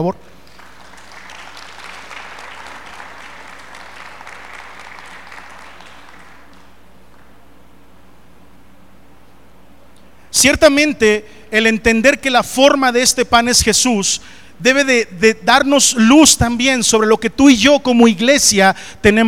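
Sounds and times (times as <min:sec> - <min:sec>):
speech: 0:00.0 - 0:00.4, 0:10.4 - 0:19.2
audience applause: 0:00.4 - 0:07.3.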